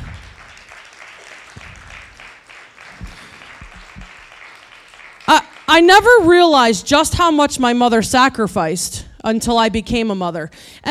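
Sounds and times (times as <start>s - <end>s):
crowd applauding: 0.0s - 6.4s
speech: 5.3s - 10.8s.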